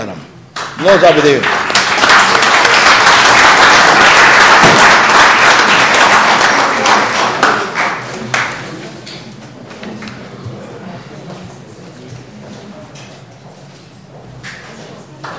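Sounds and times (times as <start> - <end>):
speech: 0.0 - 1.7
audience applause: 0.8 - 8.8.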